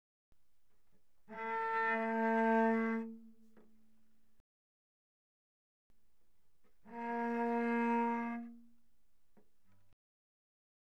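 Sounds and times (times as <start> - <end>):
cello bowed very softly on the C string: 1.2 - 4.1, 6.6 - 9.6.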